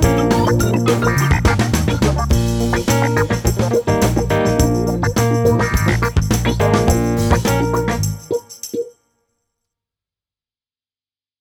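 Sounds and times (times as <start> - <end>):
party funk music: 0.0 - 8.7.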